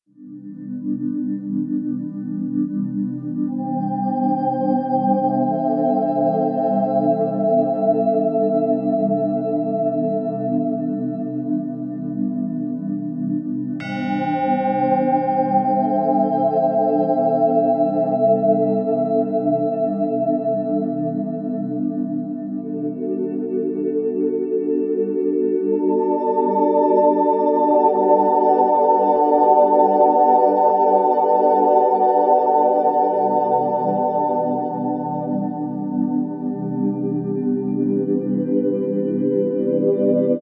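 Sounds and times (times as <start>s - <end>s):
relaxing ambient music: 0.2s - 40.4s.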